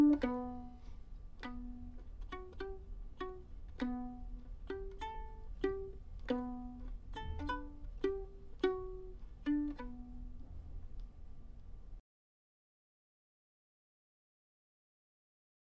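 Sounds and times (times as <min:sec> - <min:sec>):
tango violin: 0:01.4 - 0:10.2.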